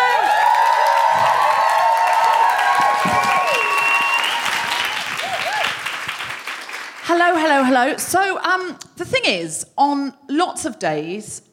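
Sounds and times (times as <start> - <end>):
audience whoops and shouts: 0.0 - 5.8
audience clapping to welcome a performer to the stage: 0.0 - 7.8
speech: 7.4 - 11.5.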